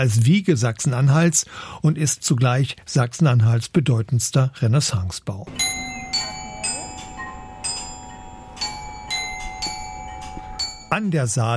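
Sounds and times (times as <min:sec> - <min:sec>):
speech: 0:00.0 - 0:05.8, 0:11.0 - 0:11.5
town hall glockenspiel chiming a slow melody: 0:05.5 - 0:11.1.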